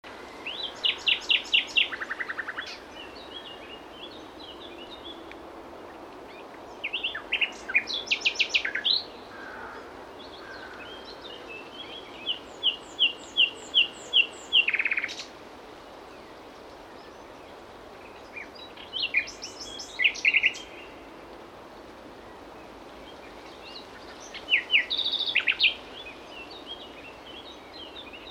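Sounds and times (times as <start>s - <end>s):
faint hiss: 0.0s - 28.2s
common nightingale song: 0.1s - 9.4s, 10.1s - 15.4s, 16.1s - 21.2s, 22.2s - 28.2s.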